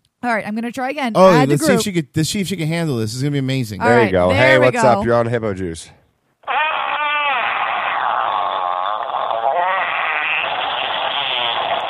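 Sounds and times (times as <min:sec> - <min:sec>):
speech: 0:00.2 - 0:06.6
long fart over the phone: 0:06.4 - 0:11.8.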